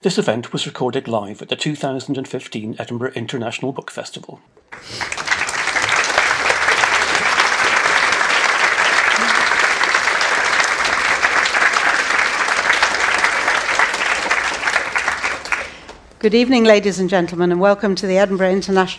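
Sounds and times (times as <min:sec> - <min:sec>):
speech: 0:00.0 - 0:05.2, 0:16.2 - 0:18.9
audience applause at the 2015 Edinburgh International Book Festival: 0:04.7 - 0:16.0.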